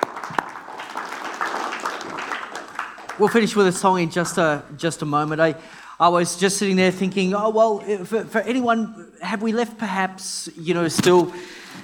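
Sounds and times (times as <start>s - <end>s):
audience applause: 0.0s - 4.4s
speech: 3.2s - 11.8s.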